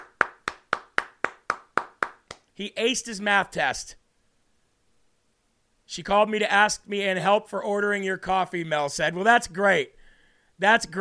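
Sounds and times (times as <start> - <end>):
sharp hand claps in applause: 0.0 - 2.5
speech: 2.6 - 4.0, 5.9 - 10.0, 10.6 - 10.9.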